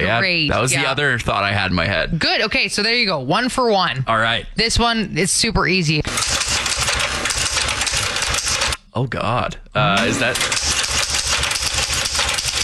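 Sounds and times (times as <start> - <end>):
speech: 0.0 - 6.6, 9.0 - 10.7
typewriter typing: 6.1 - 8.8, 10.0 - 12.6.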